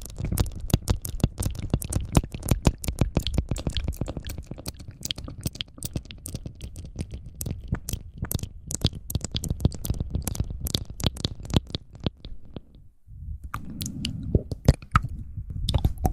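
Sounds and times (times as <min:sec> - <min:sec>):
wet mouth clicks and pops: 0:00.0 - 0:12.8, 0:13.4 - 0:16.1
low rumbling bed: 0:13.0 - 0:16.1.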